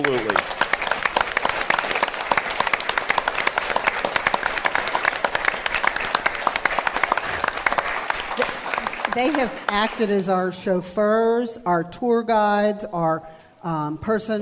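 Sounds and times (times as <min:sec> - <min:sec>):
live audience applause: 0:00.0 - 0:10.1
speech: 0:09.2 - 0:14.4.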